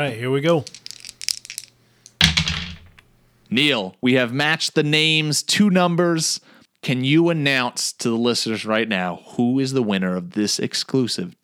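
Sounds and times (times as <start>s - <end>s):
speech: 0.0s - 0.8s, 3.5s - 11.4s
dice rolling: 0.6s - 3.1s.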